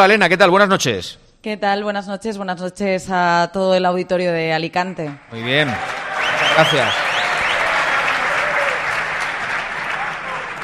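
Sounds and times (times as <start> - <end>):
speech: 0.0 - 7.1
audience applause: 5.3 - 10.6.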